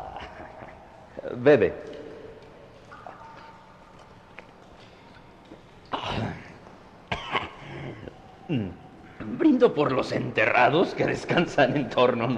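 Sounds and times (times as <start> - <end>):
speech: 1.3 - 1.9, 9.6 - 12.3
man coughing: 7.1 - 8.1.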